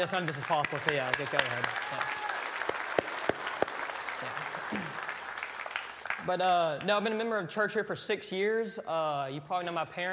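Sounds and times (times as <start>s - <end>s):
speech: 0.0s - 2.2s, 4.2s - 5.0s, 6.2s - 10.1s
audience applause: 0.0s - 6.3s.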